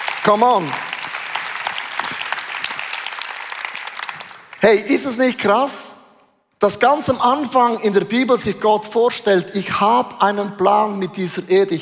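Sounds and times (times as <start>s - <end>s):
audience applause: 0.0s - 4.8s
speech: 0.2s - 0.8s, 4.6s - 5.8s, 6.6s - 11.8s.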